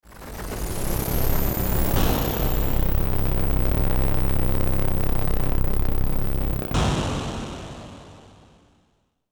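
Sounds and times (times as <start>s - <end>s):
electric static: 0.1s - 8.4s.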